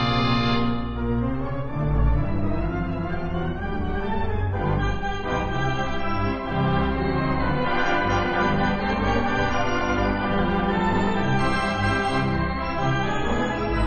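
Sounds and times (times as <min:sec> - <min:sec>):
theatre organ: 0:00.0 - 0:13.8.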